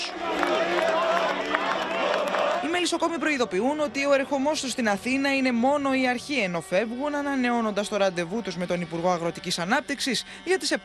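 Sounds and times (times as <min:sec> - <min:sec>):
crowd clapping: 0:00.0 - 0:03.2
crowd chanting slogans: 0:00.0 - 0:04.4
speech: 0:02.8 - 0:10.8.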